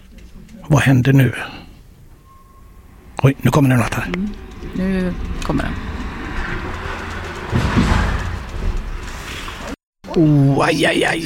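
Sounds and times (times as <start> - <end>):
speech: 0.7 - 1.6, 3.2 - 6.0, 10.2 - 11.2
motorcycle crashing into car front: 7.5 - 9.6.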